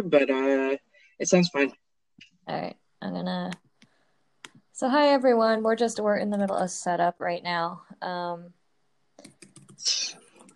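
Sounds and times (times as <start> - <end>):
speech: 0.0 - 1.8, 2.4 - 3.6, 4.8 - 8.6, 9.2 - 10.2
typing on a computer keyboard: 9.2 - 10.5.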